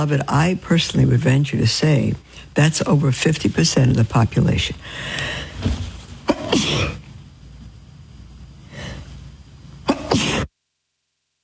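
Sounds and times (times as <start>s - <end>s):
speech: 0.0s - 5.8s, 6.5s - 7.0s
sneezes: 6.3s - 7.0s, 9.9s - 10.5s.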